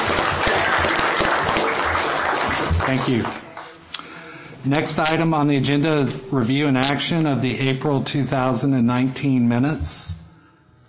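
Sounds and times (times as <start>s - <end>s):
applause at a county planning commission meeting: 0.0s - 3.8s
speech: 2.9s - 3.4s, 4.6s - 10.2s.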